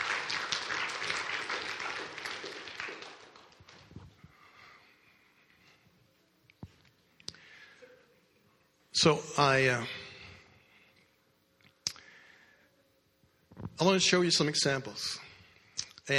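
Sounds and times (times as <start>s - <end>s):
audience applause: 0.0s - 3.9s
speech: 9.0s - 10.0s, 13.8s - 15.2s.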